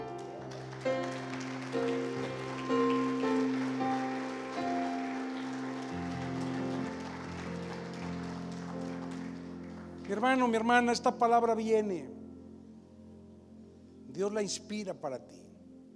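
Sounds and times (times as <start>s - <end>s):
applause: 0.0s - 10.7s
speech: 10.1s - 12.2s, 14.2s - 15.5s.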